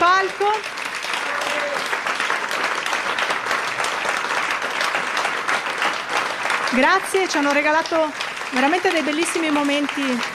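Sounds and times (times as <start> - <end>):
audience applause after a live concert: 0.0 - 10.3
speech: 6.7 - 10.3.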